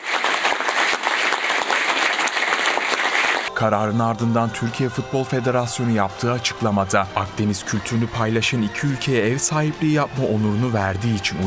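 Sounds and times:
large crowd applauding at a ceremony: 0:00.0 - 0:03.5
speech: 0:03.6 - 0:11.4.

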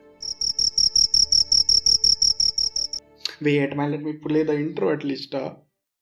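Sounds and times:
cricket chirping: 0:00.2 - 0:03.0
speech: 0:03.4 - 0:05.6.

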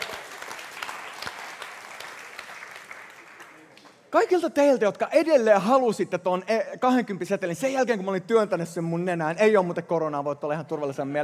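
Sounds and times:
audience applause: 0:00.0 - 0:04.0
speech: 0:04.1 - 0:11.2.

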